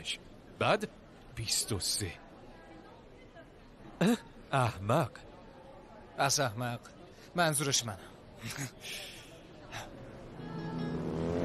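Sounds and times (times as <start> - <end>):
speech: 0.0 - 2.2, 4.0 - 5.3, 6.2 - 9.9
Vespa scooter engine revving: 10.7 - 11.4.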